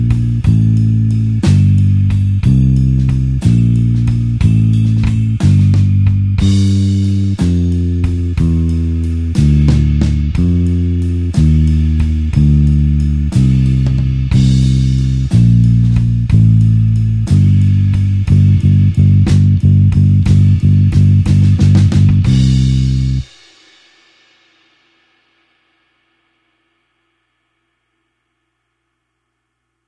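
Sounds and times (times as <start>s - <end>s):
slow blues bassline in C: 0.0s - 23.3s.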